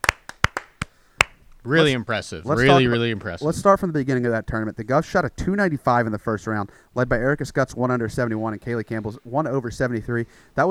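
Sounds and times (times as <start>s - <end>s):
applause: 0.0s - 1.3s
speech: 1.6s - 10.6s.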